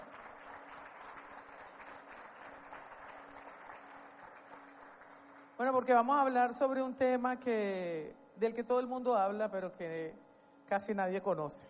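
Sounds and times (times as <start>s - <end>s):
audience applause: 0.0s - 5.6s
speech: 5.6s - 11.6s.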